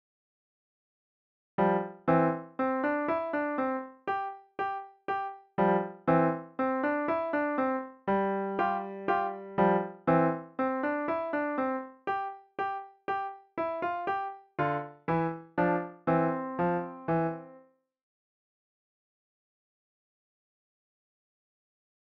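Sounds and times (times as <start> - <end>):
piano: 1.6 - 17.7.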